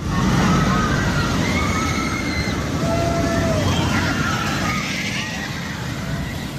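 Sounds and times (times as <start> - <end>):
crowd babble: 0.0 - 6.5
roller coaster ride at the Ekka show: 0.0 - 6.5.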